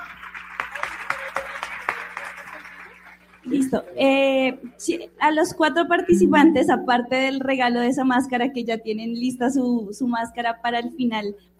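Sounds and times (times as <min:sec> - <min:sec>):
crowd applauding for a guest: 0:00.0 - 0:04.2
speech: 0:03.4 - 0:11.5.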